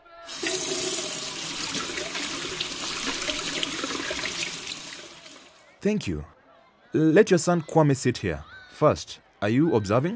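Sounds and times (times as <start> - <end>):
running water splashing at an outdoor hand-washing station: 0.0 - 5.6
speech: 5.8 - 10.1.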